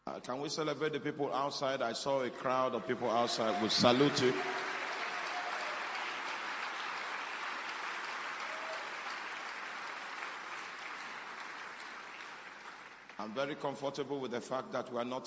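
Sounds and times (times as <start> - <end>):
speech: 0.1 - 4.7, 13.2 - 15.2
audience applauding: 2.4 - 13.3.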